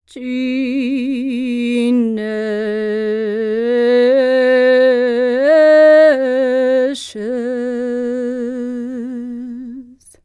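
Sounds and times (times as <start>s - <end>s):
Serbian singing voices: 0.1s - 10.2s.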